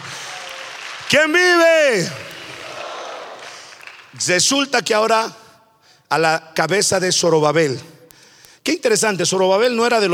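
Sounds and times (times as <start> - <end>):
audience applause: 0.0 - 4.2
speech: 1.1 - 2.3, 4.2 - 5.4, 6.1 - 8.0, 8.6 - 10.1.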